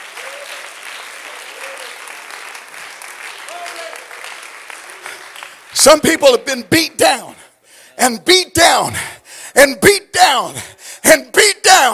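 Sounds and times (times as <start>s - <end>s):
audience applause: 0.0s - 5.8s
speech: 5.8s - 7.4s, 8.0s - 11.9s.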